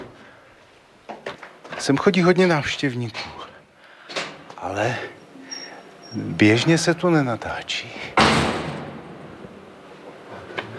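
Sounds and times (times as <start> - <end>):
speech: 1.1 - 3.4, 4.6 - 5.2, 6.1 - 8.4
heavy armored door slamming shut: 8.2 - 9.2.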